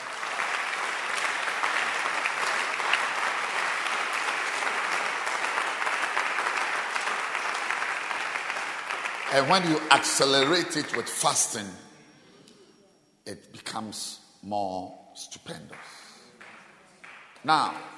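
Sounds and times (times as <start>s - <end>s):
audience clapping hands: 0.0s - 11.7s, 15.5s - 17.9s
speech: 9.4s - 11.8s, 13.3s - 16.0s, 17.4s - 17.9s.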